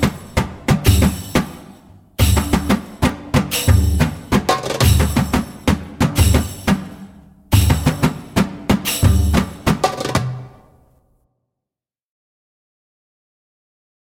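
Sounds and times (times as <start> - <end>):
fast zaffah drum rhythm: 0.0 - 10.7.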